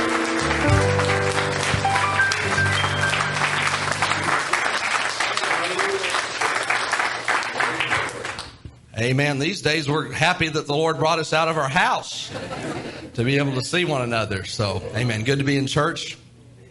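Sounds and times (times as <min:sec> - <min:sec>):
hand clapping: 0:00.0 - 0:08.7
speech: 0:09.0 - 0:16.2
laughter: 0:12.1 - 0:13.2.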